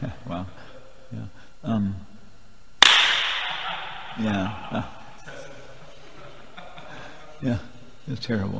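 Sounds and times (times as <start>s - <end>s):
single hand clap in a very room: 2.8s - 5.3s
laughter: 3.2s - 8.2s
speech: 4.2s - 5.0s, 7.4s - 8.5s.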